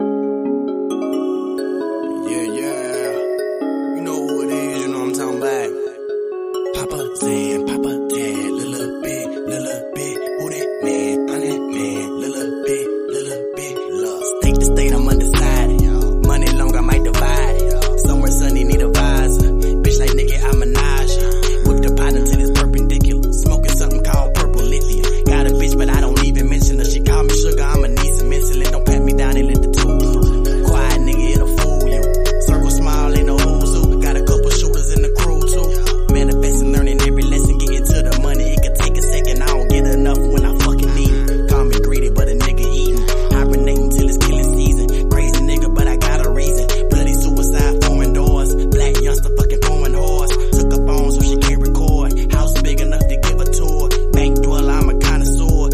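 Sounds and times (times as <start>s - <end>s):
hip hop rap remix: 0.0s - 55.7s.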